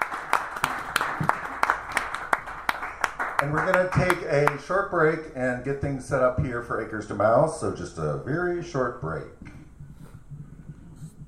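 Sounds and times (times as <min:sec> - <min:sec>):
audience clapping at a live performance: 0:00.0 - 0:04.7
speech: 0:03.4 - 0:09.4.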